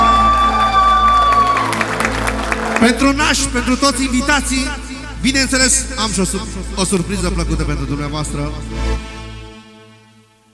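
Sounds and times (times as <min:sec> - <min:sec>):
wedding guests clapping and cheering at a reception: 0:00.0 - 0:03.6
speech: 0:02.8 - 0:09.1.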